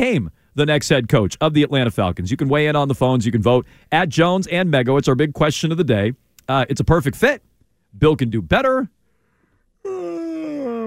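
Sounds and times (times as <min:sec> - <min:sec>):
speech: 0:00.0 - 0:09.0
exaggerated yawn: 0:09.8 - 0:10.8.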